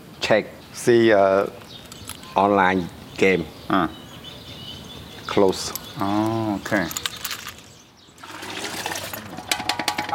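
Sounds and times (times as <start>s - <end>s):
speech: 0.3s - 1.6s, 2.4s - 4.0s, 5.3s - 7.0s
man washing pots with water: 8.2s - 10.1s.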